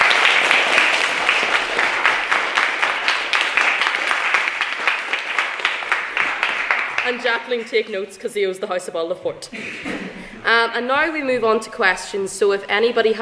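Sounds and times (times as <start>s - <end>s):
audience applause: 0.0s - 7.7s
speech: 7.1s - 13.2s.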